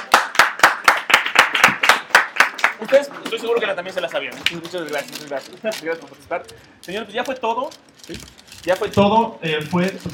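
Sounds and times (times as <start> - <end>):
audience applause: 0.0 - 3.0
speech: 2.8 - 10.1.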